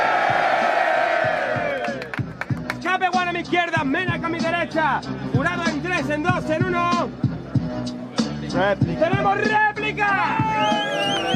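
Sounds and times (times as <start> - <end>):
crowd cheering and shouting: 0.0 - 2.1, 9.8 - 11.3
speech: 3.4 - 11.3.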